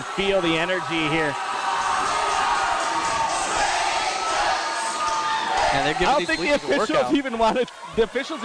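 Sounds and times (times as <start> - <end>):
speech: 0.2 - 1.5, 5.7 - 8.4
stadium crowd singing along to a song: 1.8 - 5.7.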